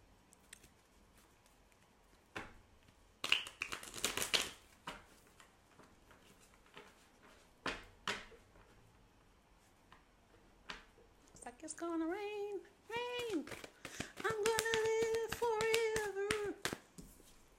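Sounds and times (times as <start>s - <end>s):
tarot cards being shuffled in a crackling riffle: 0.4s - 8.7s, 12.9s - 17.3s
speech: 11.6s - 12.7s.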